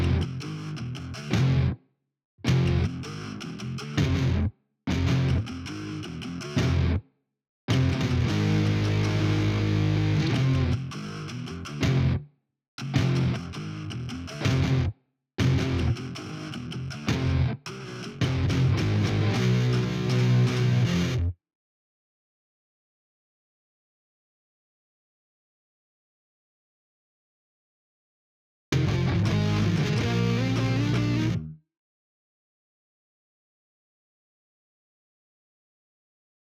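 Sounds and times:
guitars: 0.0s - 1.8s, 2.4s - 7.0s, 7.7s - 12.2s, 12.8s - 21.3s, 28.7s - 31.6s.

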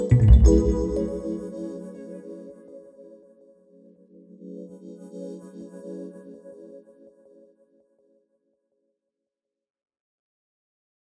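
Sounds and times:
chords: 0.1s - 1.7s.

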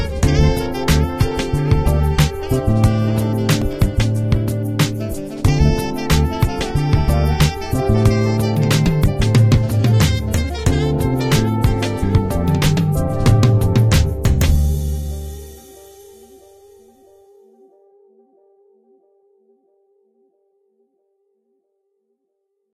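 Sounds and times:
alien jazz rap: 0.0s - 16.1s.

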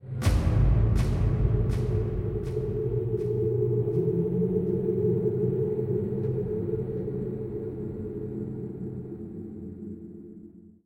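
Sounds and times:
music: 0.0s - 10.8s.

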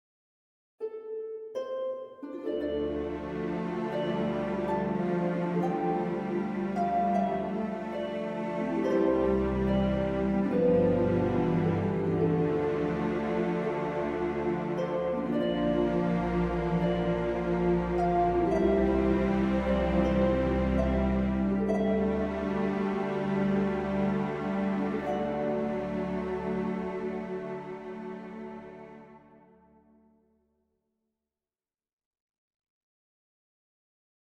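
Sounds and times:
solo harp: 0.8s - 29.0s.

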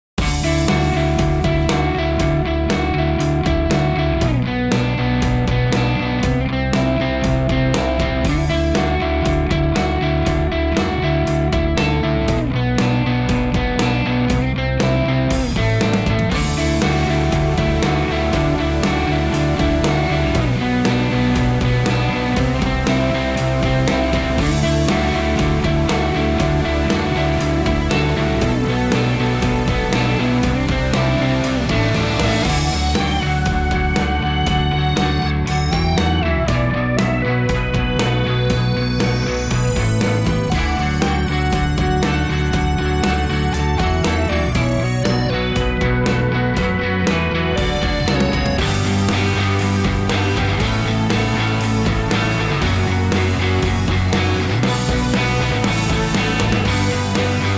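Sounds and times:
alternative rock music: 0.1s - 57.5s.

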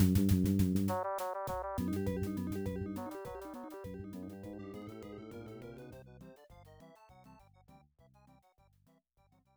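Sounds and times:
polka music: 0.0s - 5.9s.

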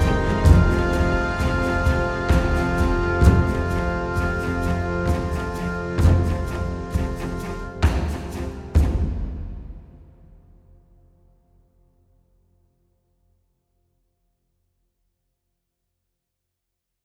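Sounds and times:
exploration music: 0.0s - 10.6s.

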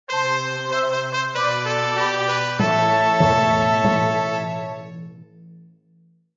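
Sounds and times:
fanfare: 0.1s - 5.0s.

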